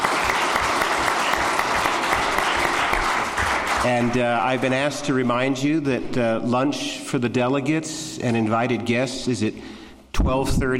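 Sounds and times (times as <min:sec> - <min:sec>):
audience round of applause: 0:00.0 - 0:04.2
speech: 0:03.8 - 0:10.7.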